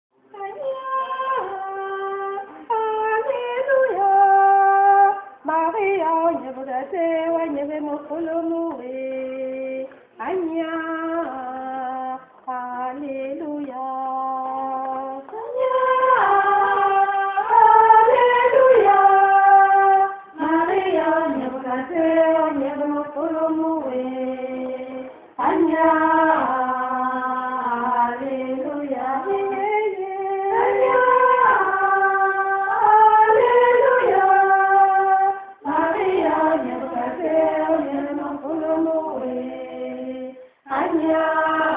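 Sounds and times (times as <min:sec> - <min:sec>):
vocals: 0:00.2 - 0:41.7.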